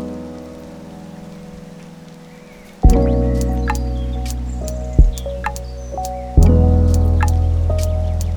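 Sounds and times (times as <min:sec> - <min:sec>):
lofi hip hop: 0:02.9 - 0:08.3.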